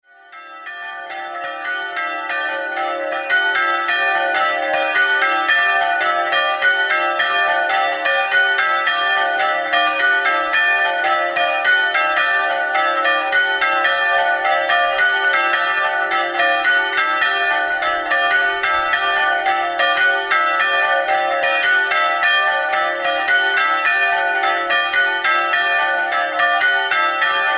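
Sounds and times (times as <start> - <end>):
bells ringing: 0.1 - 27.5.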